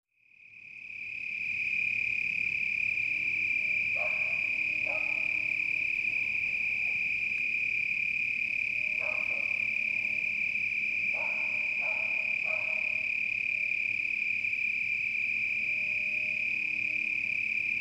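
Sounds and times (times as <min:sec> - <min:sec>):
cricket giving a steady high-pitched trill: 0:00.4 - 0:17.7.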